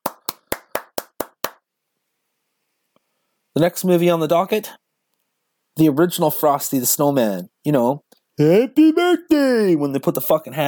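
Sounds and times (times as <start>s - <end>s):
crisp hand claps from a single person: 0.0s - 1.7s
speech: 3.6s - 4.8s, 5.8s - 10.6s.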